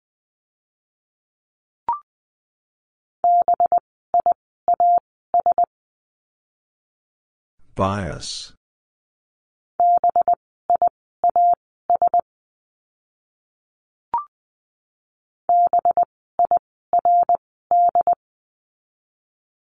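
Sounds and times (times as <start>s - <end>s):
Morse code tones spelling a word: 3.3s - 5.7s, 9.8s - 12.2s, 15.5s - 18.2s
speech: 7.8s - 8.6s.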